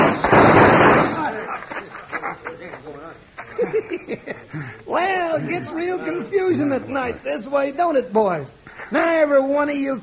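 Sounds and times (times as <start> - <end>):
burst of gunfire: 0.0 - 1.4
laughter: 1.3 - 2.7, 3.4 - 7.2
speech: 5.6 - 10.0.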